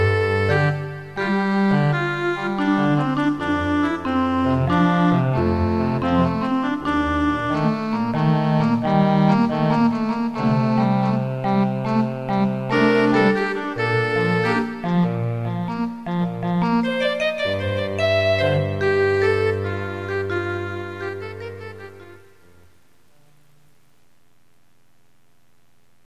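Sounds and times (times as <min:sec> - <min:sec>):
oboe: 0:00.0 - 0:22.7.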